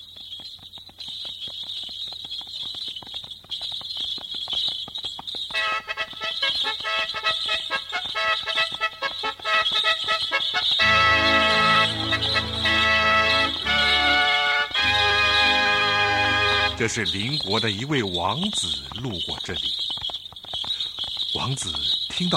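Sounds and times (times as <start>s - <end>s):
horse hooves pulling a carriage: 0.0s - 22.3s
jingling bells: 5.5s - 22.3s
melodic music: 9.2s - 17.3s
speech: 16.8s - 19.8s, 21.4s - 22.3s.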